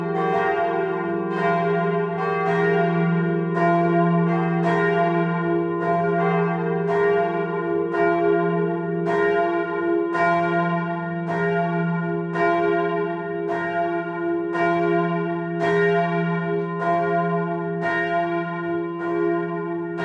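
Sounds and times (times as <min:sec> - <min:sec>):
church bells ringing: 0:00.0 - 0:20.0.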